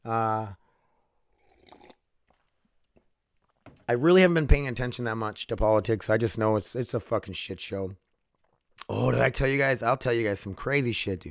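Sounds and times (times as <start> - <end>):
speech: 0.0 - 0.6, 3.9 - 8.0, 8.9 - 11.3
person sipping coffee: 1.2 - 2.4.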